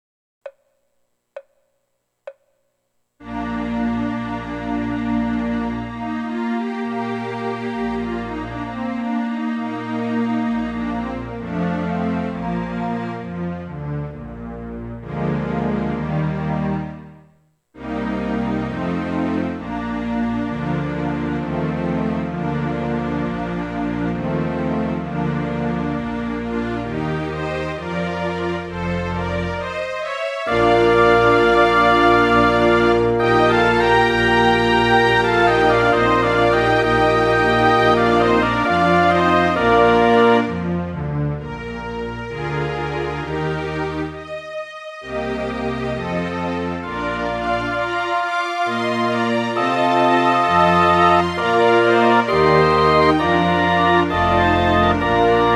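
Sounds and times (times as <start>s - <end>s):
horn concerto with orchestra: 3.2s - 17.2s, 17.8s - 55.5s.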